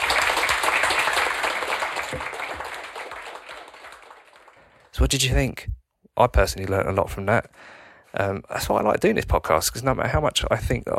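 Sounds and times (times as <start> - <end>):
crowd applauding: 0.0 - 5.0
speech: 5.0 - 10.9.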